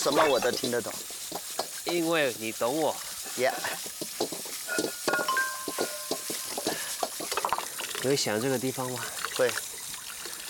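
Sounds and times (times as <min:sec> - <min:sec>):
speech: 0:00.0 - 0:04.0, 0:08.0 - 0:09.7
running water: 0:00.0 - 0:10.4
dishes clinking while being washed: 0:04.2 - 0:07.6.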